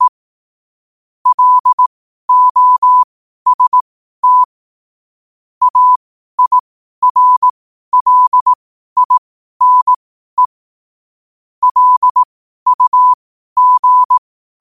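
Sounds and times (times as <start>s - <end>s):
morse code at 5 wpm: 1.3s - 4.5s, 5.6s - 10.5s, 11.6s - 14.5s.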